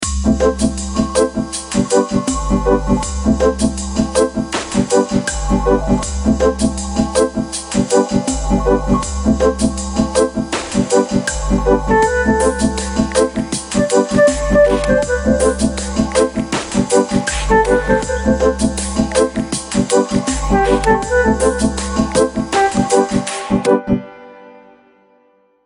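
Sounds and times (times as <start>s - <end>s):
reggae ringtone: 0.3s - 23.8s.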